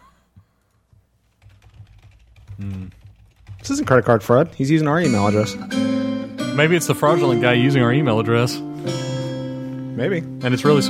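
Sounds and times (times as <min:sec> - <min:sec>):
computer keyboard typing while resetting a lost password: 0:01.2 - 0:04.5
speech: 0:02.6 - 0:03.0, 0:03.6 - 0:06.0, 0:06.6 - 0:09.0, 0:10.0 - 0:10.8.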